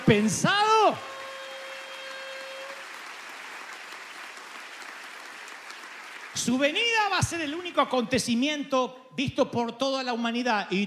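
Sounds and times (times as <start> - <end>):
audience applauding loudly: 0.0 - 7.2
speech: 0.1 - 1.1, 6.4 - 10.8.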